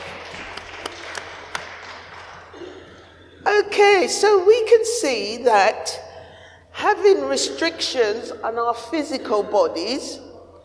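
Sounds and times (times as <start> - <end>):
audience clapping: 0.0 - 3.2
speech: 3.6 - 6.0, 6.9 - 10.2.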